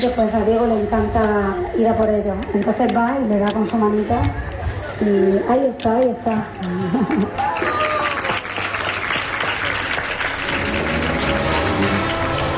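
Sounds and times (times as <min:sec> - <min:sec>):
speech: 0:00.0 - 0:07.6
audience applause: 0:06.6 - 0:12.5.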